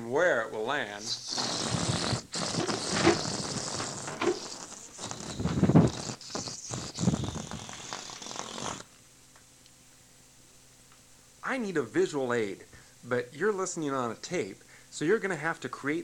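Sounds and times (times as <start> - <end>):
speech: 0.1 - 2.1, 11.6 - 16.0
balloon deflating as it flies around: 1.0 - 8.9.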